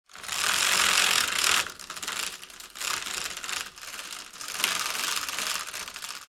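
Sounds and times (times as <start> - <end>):
fabric venetian blind rolling down: 0.0 - 6.3.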